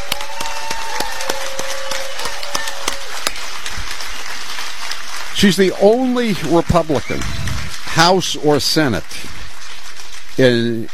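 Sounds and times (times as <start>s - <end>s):
crowd applause: 0.0s - 10.9s
speech: 5.4s - 7.4s, 8.0s - 9.4s, 10.4s - 10.9s.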